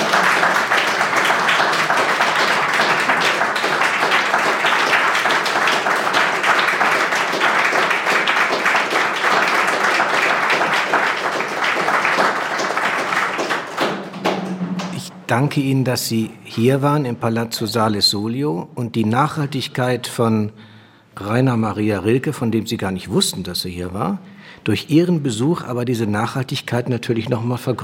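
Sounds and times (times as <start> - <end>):
audience applause: 0.0 - 15.1
speech: 15.3 - 27.8.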